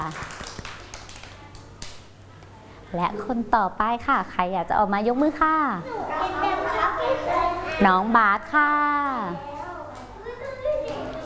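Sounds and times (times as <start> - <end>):
speech: 0.0 - 0.3, 2.9 - 6.4, 7.1 - 9.5
children clapping: 0.0 - 2.0, 10.8 - 11.2.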